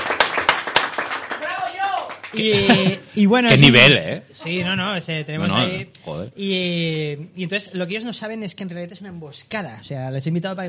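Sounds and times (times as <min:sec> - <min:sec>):
applause for guests: 0:00.0 - 0:02.6
speech: 0:02.3 - 0:10.6
laughter: 0:02.4 - 0:03.1.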